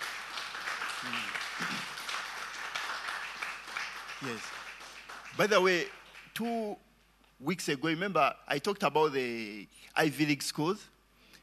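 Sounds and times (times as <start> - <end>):
crowd clapping to welcome a speaker at a church gathering: 0.0 - 6.5
speech: 1.0 - 1.9, 4.2 - 4.6, 5.4 - 6.8, 7.4 - 11.0.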